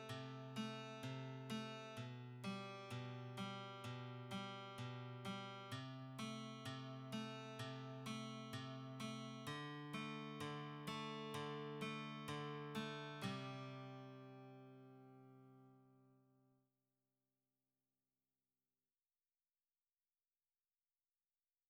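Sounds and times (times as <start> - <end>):
guitar: 0.0 - 16.2.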